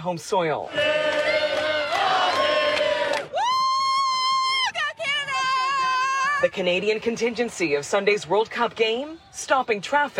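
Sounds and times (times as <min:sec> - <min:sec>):
speech: 0:00.0 - 0:01.1, 0:06.4 - 0:10.1
crowd of fans cheering and shouting: 0:00.7 - 0:06.5.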